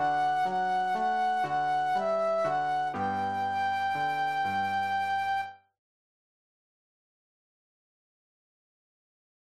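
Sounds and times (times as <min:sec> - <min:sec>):
flute solo: 0:00.0 - 0:05.7.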